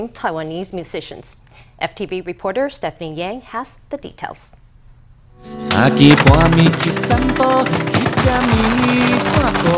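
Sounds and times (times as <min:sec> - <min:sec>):
speech: 0:00.0 - 0:04.6, 0:05.4 - 0:09.7
fireworks exploding: 0:05.6 - 0:09.7.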